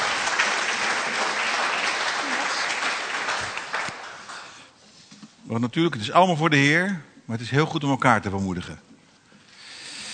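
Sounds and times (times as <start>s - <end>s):
audience applause: 0.0s - 4.7s
speech: 5.5s - 8.9s.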